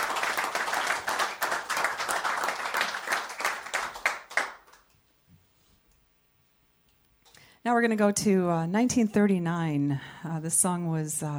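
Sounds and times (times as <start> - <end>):
audience applause at a live concert: 0.0 - 4.8
speech: 7.6 - 11.3.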